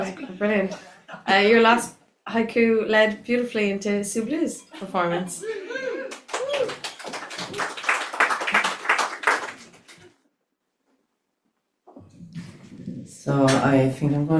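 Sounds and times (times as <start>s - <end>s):
speech: 0.1s - 6.8s, 13.3s - 14.3s
audience clapping: 6.1s - 10.2s.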